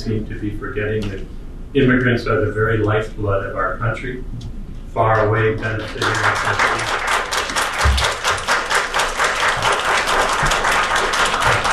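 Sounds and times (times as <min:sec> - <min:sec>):
speech: 0:00.0 - 0:07.0
applause in a courtroom ceremony: 0:05.8 - 0:11.7.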